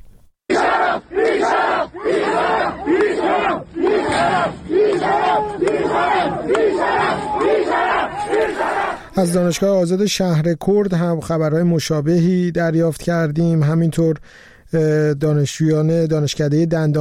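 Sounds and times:
crowd of protesters shouting in rhythmic bursts: 0.5 - 9.1
speech: 4.2 - 16.9.

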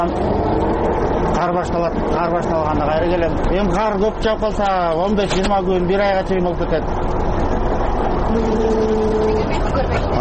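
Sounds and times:
speech: 0.0 - 0.4, 1.4 - 7.3, 8.3 - 10.2
Caterpillar motor grader and snow loader diesel engines clearing snow on Too-Ashuu pass road: 0.0 - 10.2.

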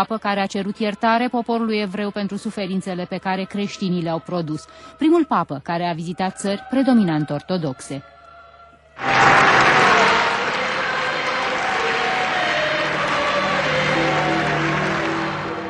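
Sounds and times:
speech: 0.0 - 8.1, 9.0 - 9.5
large crowd applause at funeral procession: 9.0 - 15.6.

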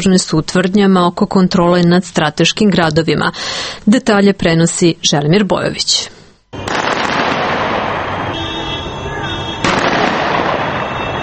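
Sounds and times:
speech: 0.0 - 6.2
celebratory gunfire: 6.6 - 8.4, 9.6 - 11.2.

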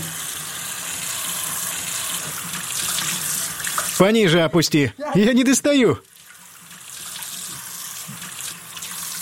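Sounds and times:
tap water splashing into a basin: 2.2 - 4.0, 6.2 - 9.1
speech: 4.0 - 6.1.

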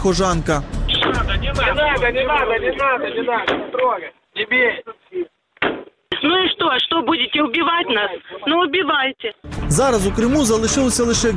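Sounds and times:
speech: 0.0 - 5.3, 6.2 - 11.3
men shouting: 0.9 - 3.5.

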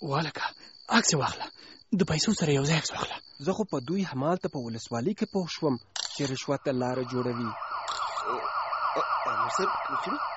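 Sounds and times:
speech: 0.0 - 10.3
police car siren wailing: 6.7 - 10.3.

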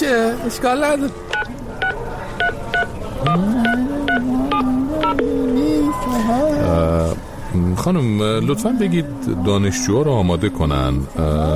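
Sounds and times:
speech: 0.0 - 1.3, 3.2 - 4.4, 5.1 - 11.5
steady electronic tone: 3.2 - 6.9
low warbling hum: 3.4 - 6.9
phone number dialed with keypad beeps: 4.1 - 6.3.

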